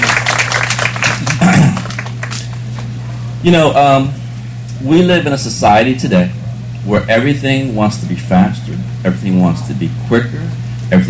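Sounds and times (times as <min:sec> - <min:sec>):
audience applause: 0:00.0 - 0:02.8
speech: 0:03.4 - 0:04.2, 0:04.8 - 0:11.0.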